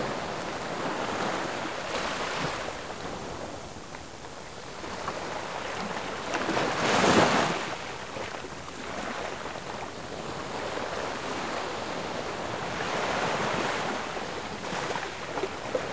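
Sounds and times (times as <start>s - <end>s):
Arctic Ocean: 0.0s - 15.9s.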